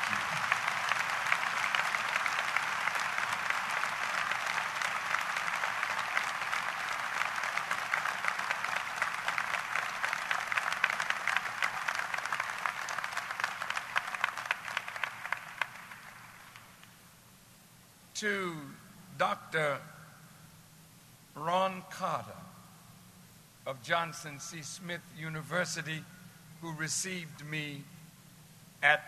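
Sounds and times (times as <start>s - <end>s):
audience applause: 0.0s - 16.8s
speech: 18.2s - 19.9s, 21.4s - 22.4s, 23.7s - 27.9s, 28.8s - 29.0s.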